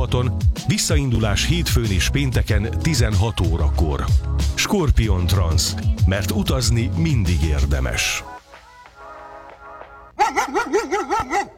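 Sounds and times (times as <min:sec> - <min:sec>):
speech: 0:00.1 - 0:08.3
dog barking: 0:10.2 - 0:11.5.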